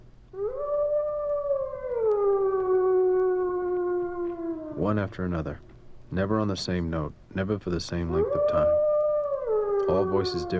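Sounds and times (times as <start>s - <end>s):
wolf howling: 0.4s - 5.3s, 8.1s - 10.5s
speech: 4.8s - 8.9s, 9.9s - 10.5s.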